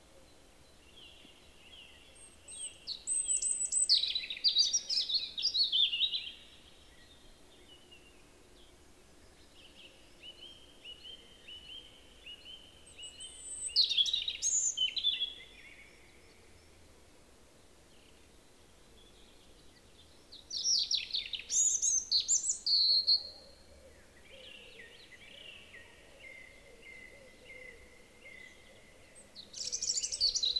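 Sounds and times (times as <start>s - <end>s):
European robin singing: 0.9s - 7.2s, 10.3s - 16.1s, 19.7s - 23.5s, 24.1s - 30.5s.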